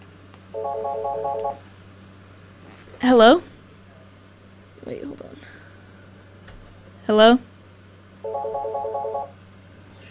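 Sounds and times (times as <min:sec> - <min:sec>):
faint hum: 0:00.0 - 0:10.0
telephone warbling electronic ringing for an incoming call: 0:00.6 - 0:01.6, 0:08.2 - 0:09.4
speech: 0:00.7 - 0:01.7, 0:03.0 - 0:03.5, 0:04.8 - 0:05.6, 0:07.1 - 0:07.5, 0:08.2 - 0:09.4.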